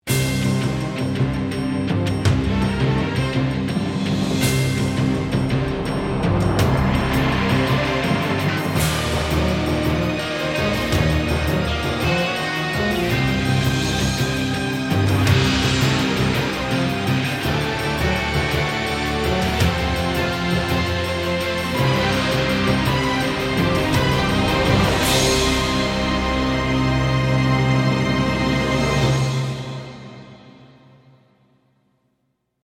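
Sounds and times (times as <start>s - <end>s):
epic battle music: 0.1s - 30.8s.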